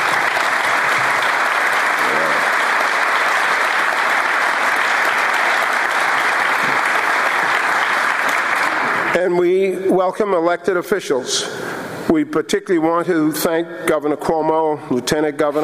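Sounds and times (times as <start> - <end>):
audience applause: 0.0 - 9.2
speech: 9.2 - 15.6.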